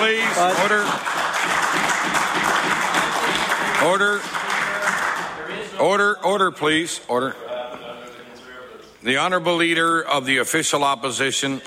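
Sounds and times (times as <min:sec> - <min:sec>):
speech: 0:00.0 - 0:02.4, 0:03.8 - 0:04.4, 0:05.8 - 0:07.5, 0:09.0 - 0:11.6
applause in a legislative chamber: 0:00.0 - 0:05.4.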